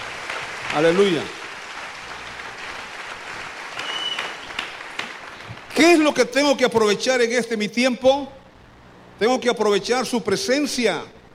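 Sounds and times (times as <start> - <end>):
audience applause: 0.0 - 6.0
speech: 0.7 - 1.4, 5.8 - 8.4, 9.2 - 11.2.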